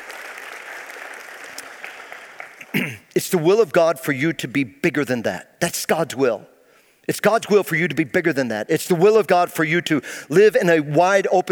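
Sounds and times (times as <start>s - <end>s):
audience applause: 0.0s - 2.8s
speech: 2.8s - 6.5s, 7.1s - 11.4s.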